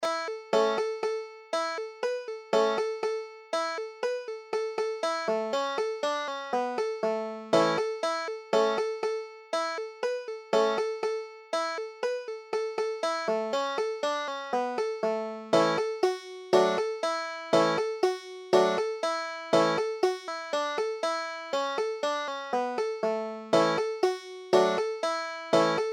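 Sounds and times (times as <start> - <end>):
banjo: 0.0 - 25.9.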